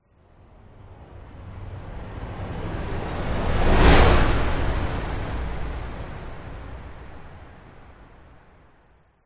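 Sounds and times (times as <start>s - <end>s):
whoosh: 2.4s - 7.4s.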